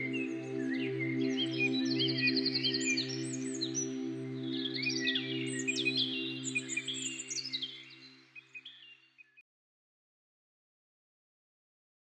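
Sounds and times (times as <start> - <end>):
birds chirping: 0.0 - 9.4.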